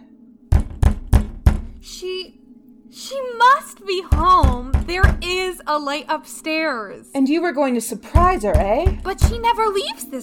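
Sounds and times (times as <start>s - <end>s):
knuckles knocking hard on a door: 0.5s - 1.9s, 4.1s - 5.6s, 8.2s - 9.8s
speech: 1.8s - 10.2s.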